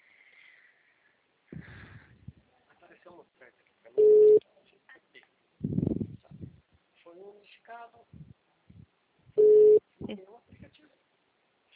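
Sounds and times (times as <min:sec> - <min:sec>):
telephone busy tone after a dropped call: 0:04.0 - 0:04.4, 0:09.4 - 0:09.8.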